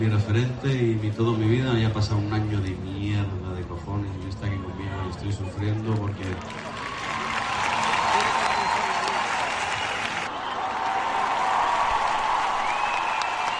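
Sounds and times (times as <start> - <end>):
speech: 0.0 - 6.8
concert audience applauding: 5.6 - 13.5.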